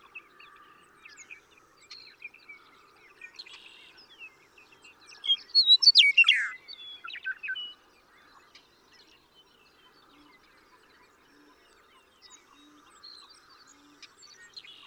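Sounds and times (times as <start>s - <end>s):
Western meadowlark singing: 5.1s - 7.8s.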